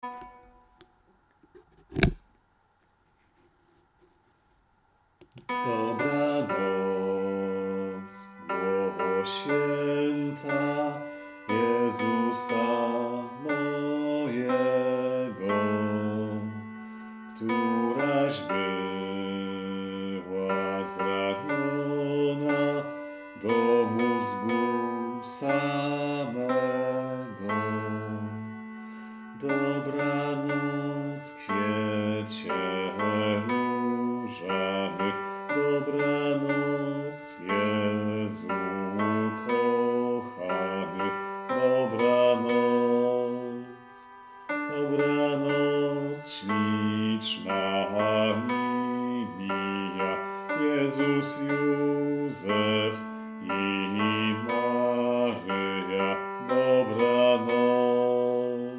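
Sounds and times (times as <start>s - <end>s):
tenor singing: 5.2s - 58.7s.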